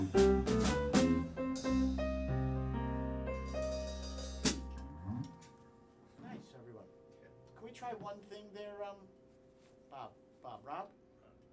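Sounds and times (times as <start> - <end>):
jazz solo: 0.0 - 6.5.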